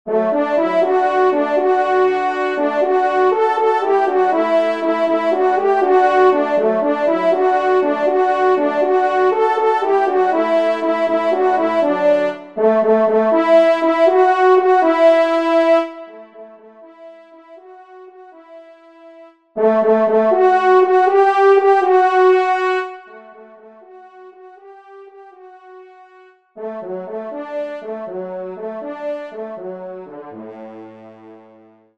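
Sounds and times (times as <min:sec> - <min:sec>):
horn: 0:00.1 - 0:31.9.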